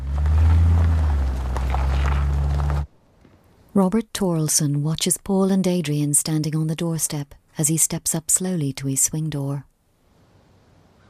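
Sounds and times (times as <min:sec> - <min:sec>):
car engine droning while reversing: 0:00.0 - 0:02.9
speech: 0:03.8 - 0:09.7.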